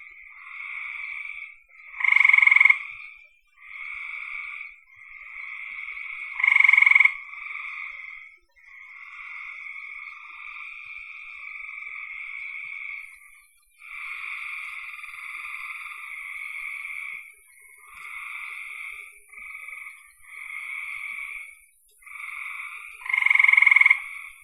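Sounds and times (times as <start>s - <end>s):
frogs trilling: 0.0s - 24.4s.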